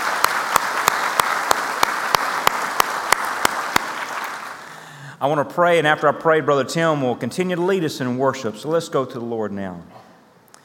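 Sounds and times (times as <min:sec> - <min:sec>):
sharp evenly spaced claps: 0:00.0 - 0:04.7
church congregation applauding to welcome visitors at a morning service: 0:00.0 - 0:05.0
speech: 0:05.2 - 0:10.0.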